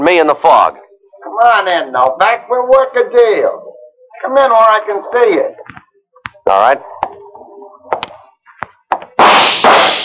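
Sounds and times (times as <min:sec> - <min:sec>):
speech: 0:00.1 - 0:00.8, 0:01.4 - 0:03.6, 0:04.2 - 0:05.7, 0:06.4 - 0:06.9
gunshots in a radio drama fired in the fog: 0:09.2 - 0:10.0.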